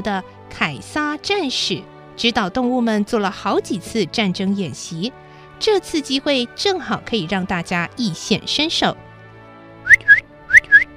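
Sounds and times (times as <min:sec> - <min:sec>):
speech: 0:00.0 - 0:09.0
shrill whistle signal: 0:09.8 - 0:10.9.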